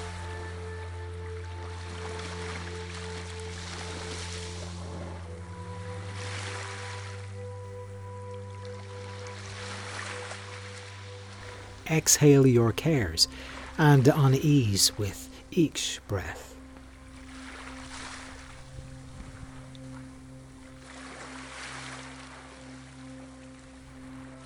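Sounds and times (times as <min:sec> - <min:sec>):
low droning hum: 0:00.0 - 0:09.2, 0:10.9 - 0:12.0, 0:16.5 - 0:21.4, 0:22.1 - 0:24.4
ocean waves: 0:00.0 - 0:24.4
speech: 0:11.9 - 0:16.5.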